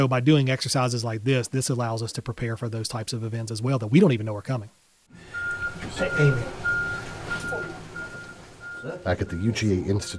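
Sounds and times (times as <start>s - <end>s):
speech: 0.0s - 6.6s, 8.8s - 10.1s
ambulance reversing alarm beeps: 5.3s - 10.1s.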